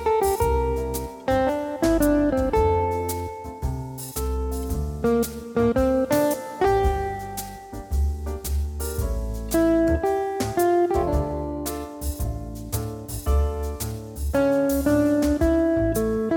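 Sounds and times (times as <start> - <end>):
acoustic jazz on a Korg Pa4x keyboard: 0.0 - 16.3.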